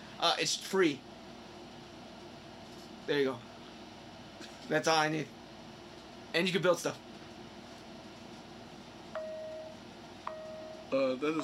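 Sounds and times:
speech: 0.2s - 1.1s, 3.1s - 3.5s, 4.7s - 5.4s, 6.3s - 7.0s, 10.9s - 11.4s
thin quiet bell dings: 9.2s - 9.7s, 10.3s - 11.4s.

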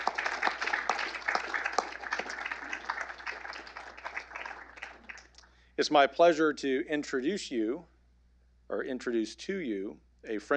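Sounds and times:
audience applause: 0.0s - 5.4s
speech: 5.8s - 7.9s, 8.7s - 10.5s.

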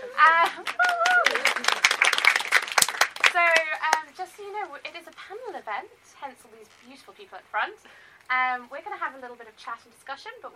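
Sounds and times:
speech: 0.2s - 1.0s, 4.2s - 10.5s
audience applause: 0.4s - 3.7s.

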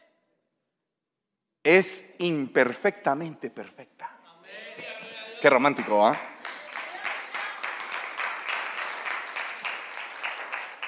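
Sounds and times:
speech: 1.6s - 4.1s, 5.4s - 6.3s
audience applause: 5.5s - 10.8s.

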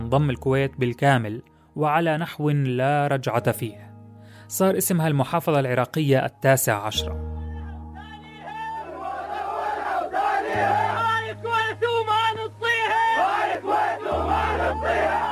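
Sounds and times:
speech: 0.1s - 3.9s, 4.5s - 7.3s
Iraqi soldiers chanting in the presence of Saddam Hussein: 8.4s - 11.8s, 12.5s - 15.3s.

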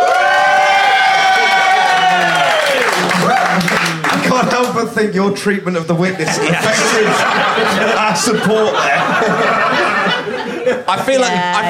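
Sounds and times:
live audience applauding and cheering: 0.0s - 4.7s
laughter: 2.9s - 4.8s, 6.0s - 11.6s
speech: 5.0s - 11.6s.

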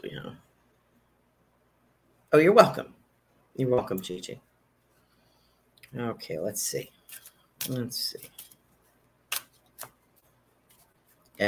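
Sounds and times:
speech: 2.3s - 3.0s, 3.6s - 4.5s, 5.9s - 8.5s
shuffling new tarot cards: 7.0s - 11.4s.

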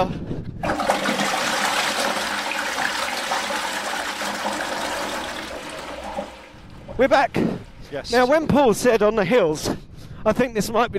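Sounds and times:
toilet flushing: 0.6s - 8.4s
speech: 7.0s - 10.9s.

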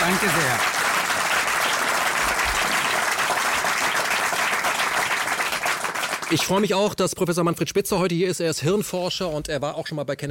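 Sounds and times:
audience applause: 0.0s - 6.7s
speech: 0.1s - 0.8s, 6.3s - 10.2s.

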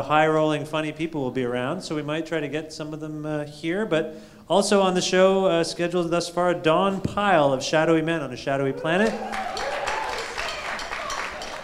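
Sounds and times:
speech: 0.0s - 9.6s
crowd applause: 8.8s - 11.6s.

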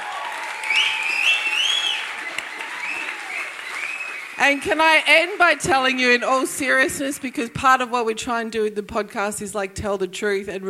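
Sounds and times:
audience applause: 0.0s - 7.4s
high whistles: 0.4s - 4.6s
speech: 4.4s - 10.6s.

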